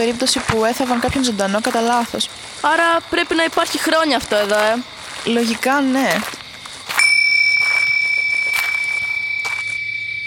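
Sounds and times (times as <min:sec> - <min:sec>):
speech: 0:00.0 - 0:06.4
small bell ringing: 0:06.9 - 0:10.2.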